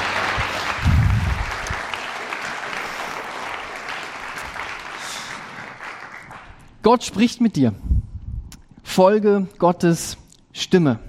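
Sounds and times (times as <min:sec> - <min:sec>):
audience applause: 0:00.0 - 0:06.6
speech: 0:06.8 - 0:07.9, 0:09.0 - 0:11.0.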